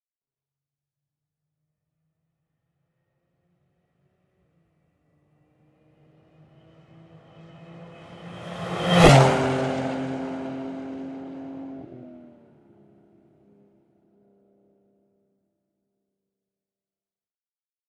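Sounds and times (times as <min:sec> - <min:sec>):
Porsche passing quickly: 0:06.0 - 0:13.2.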